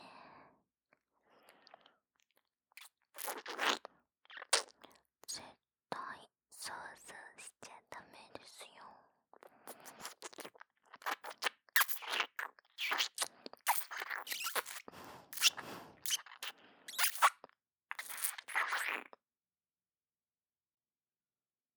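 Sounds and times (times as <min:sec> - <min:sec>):
ear licking sounds: 0:02.8 - 0:05.0, 0:09.7 - 0:17.4, 0:17.9 - 0:19.1.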